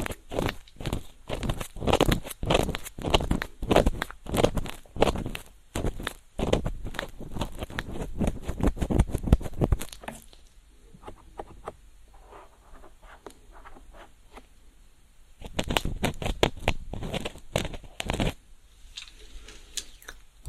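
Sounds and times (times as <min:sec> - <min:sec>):
ear cleaning with a feather pick: 0:00.0 - 0:10.0, 0:11.0 - 0:14.5, 0:15.4 - 0:18.4.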